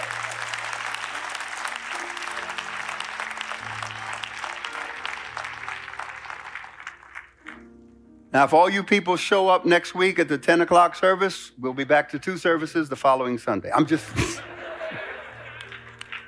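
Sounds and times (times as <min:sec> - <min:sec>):
audience applauding, hand clapping: 0:00.0 - 0:07.8, 0:14.9 - 0:16.2
speech: 0:08.4 - 0:14.5
laughter: 0:14.0 - 0:16.2.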